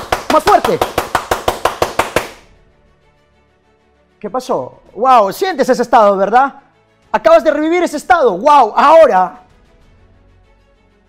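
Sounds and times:
audience clapping hands: 0.0s - 2.5s
speech: 0.4s - 1.1s, 4.2s - 9.4s.

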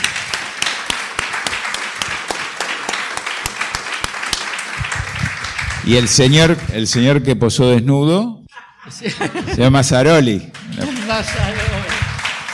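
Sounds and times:
audience applauding: 0.0s - 7.4s, 9.6s - 12.5s
speech: 5.8s - 11.9s
laughter: 8.5s - 11.8s.

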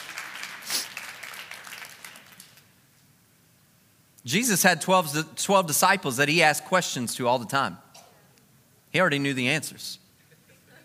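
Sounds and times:
audience applause: 0.0s - 2.6s
speech: 4.2s - 7.8s, 8.9s - 10.0s.

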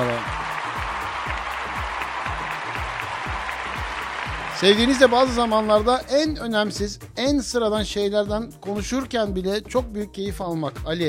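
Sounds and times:
big round of applause: 0.0s - 6.3s
speech: 4.6s - 11.0s.

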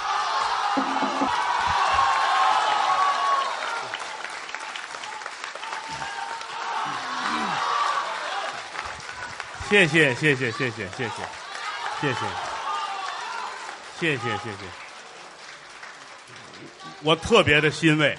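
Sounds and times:
scattered cheers and whoops: 0.0s - 9.5s, 10.4s - 14.6s
large crowd applause: 0.0s - 18.1s
speech: 0.8s - 1.1s, 9.7s - 11.4s, 12.0s - 12.5s, 14.0s - 14.8s, 17.0s - 18.1s.

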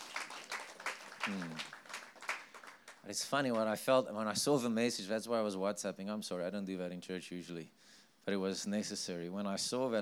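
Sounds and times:
audience clapping: 0.0s - 3.6s
speech: 1.3s - 1.8s, 3.0s - 10.0s.

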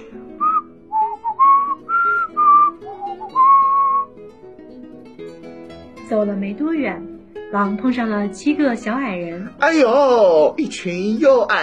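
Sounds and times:
whistling a tune: 0.3s - 4.2s
speech: 6.1s - 11.6s.

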